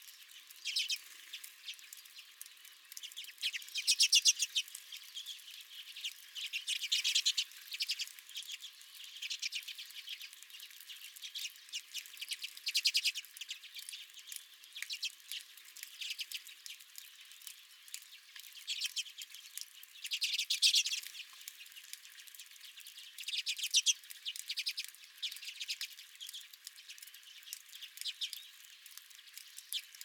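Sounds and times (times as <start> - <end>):
redpolls chattering: 0.0 - 30.0.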